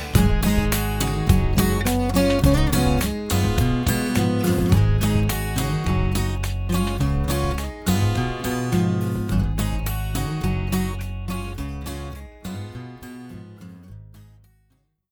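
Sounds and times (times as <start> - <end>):
rock medley: 0.0 - 12.0.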